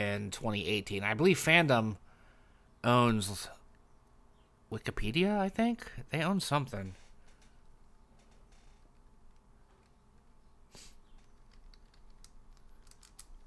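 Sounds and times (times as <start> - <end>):
soft steady hiss: 0.0 - 13.4
speech: 0.2 - 2.0, 2.8 - 3.6, 4.7 - 7.0
typing on a computer keyboard: 11.2 - 13.4.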